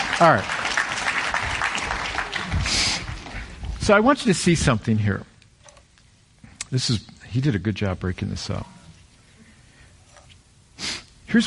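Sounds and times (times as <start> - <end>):
audience clapping: 0.0 - 3.6
speech: 0.2 - 0.6, 3.9 - 5.3, 6.7 - 8.8.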